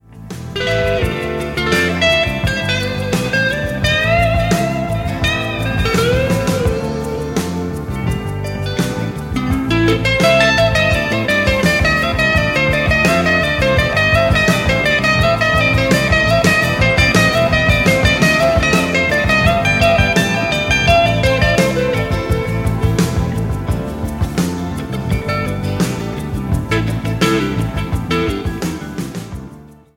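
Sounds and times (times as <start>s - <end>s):
Schecter Strat electric guitar: 0.0s - 29.9s.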